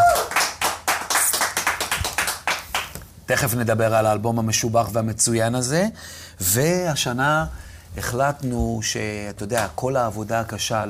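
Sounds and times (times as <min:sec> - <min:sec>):
audience applause: 0:00.0 - 0:02.9
speech: 0:03.3 - 0:10.8.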